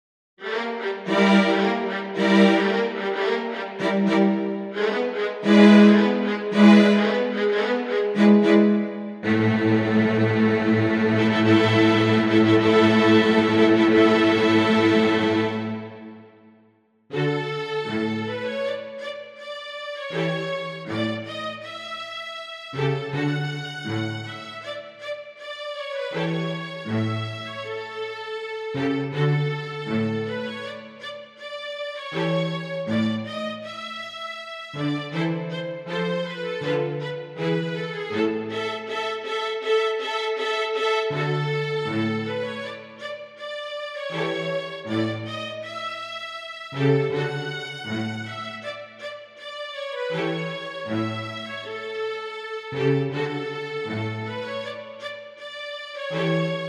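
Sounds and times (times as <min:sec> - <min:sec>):
string orchestra playing: 0:00.4 - 0:16.4, 0:17.1 - 0:56.6.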